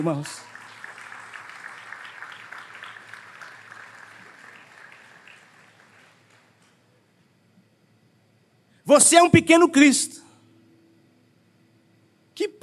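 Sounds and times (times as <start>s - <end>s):
speech: 0.0s - 0.5s, 8.9s - 10.2s, 12.4s - 12.6s
audience applauding: 0.0s - 6.7s.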